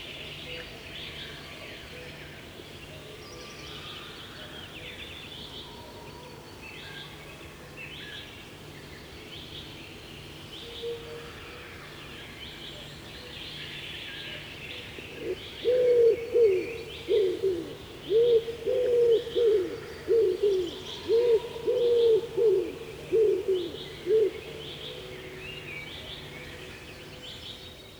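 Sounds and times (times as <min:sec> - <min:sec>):
Common Wood Pigeon song: 0:15.2 - 0:24.6.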